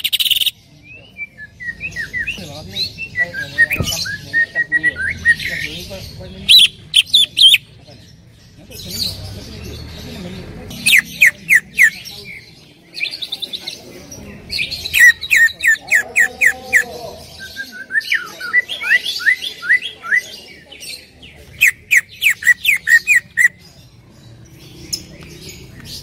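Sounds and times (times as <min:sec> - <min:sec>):
Greater green leafbird trilling and chipping: 0:00.0 - 0:26.0.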